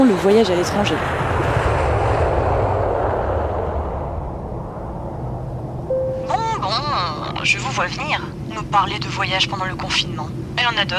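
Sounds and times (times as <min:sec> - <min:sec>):
speech: 0:00.0 - 0:01.4, 0:07.8 - 0:10.9
airplane engine: 0:00.0 - 0:10.9.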